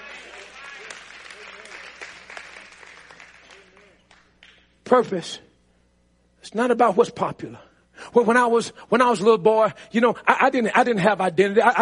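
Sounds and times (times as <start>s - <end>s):
audience clapping: 0.0s - 5.1s
speech: 4.9s - 5.5s, 6.4s - 11.8s.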